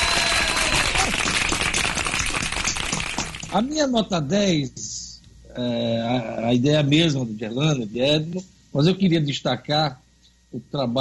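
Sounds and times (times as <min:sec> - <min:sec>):
applause: 0:00.0 - 0:03.6
speech: 0:03.5 - 0:04.9, 0:05.6 - 0:11.0.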